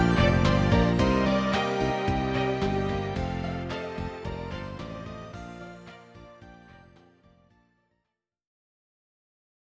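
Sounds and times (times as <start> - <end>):
background music: 0.0 - 6.9.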